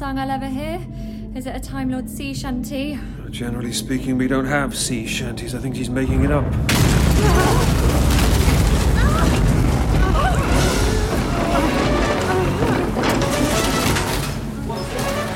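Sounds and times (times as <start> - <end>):
speech: 0.1 - 8.2
depth charge explosions: 6.1 - 14.6.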